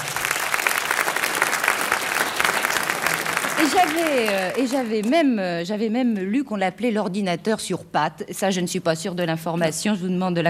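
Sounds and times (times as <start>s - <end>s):
audience applause: 0.0s - 5.2s
speech: 3.6s - 10.4s.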